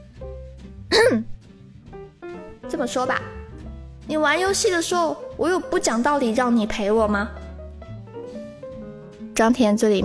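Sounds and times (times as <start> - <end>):
person coughing: 0.9 - 1.4
speech: 1.0 - 1.3, 2.8 - 3.4, 4.1 - 7.4, 9.4 - 10.0.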